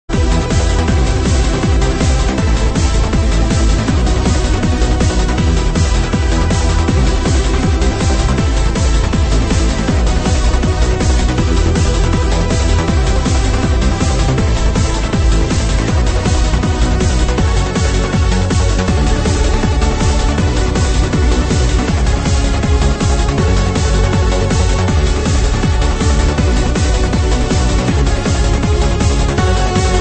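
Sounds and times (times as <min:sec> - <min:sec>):
trance remix: 0:00.0 - 0:29.9.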